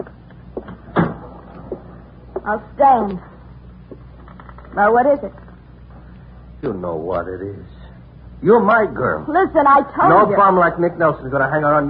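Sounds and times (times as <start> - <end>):
door shutting: 0.6 - 1.8
speech: 2.4 - 3.3, 4.8 - 5.4, 6.6 - 7.8, 8.4 - 11.8.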